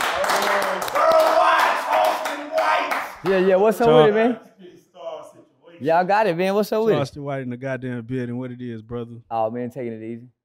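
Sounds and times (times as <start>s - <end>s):
crowd clapping: 0.0s - 3.6s
speech: 3.2s - 4.7s, 5.8s - 10.4s.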